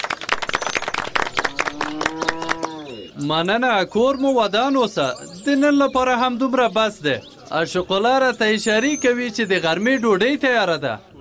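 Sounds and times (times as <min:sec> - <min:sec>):
audience of villagers clapping hands: 0:00.0 - 0:03.1
speech: 0:03.2 - 0:11.1.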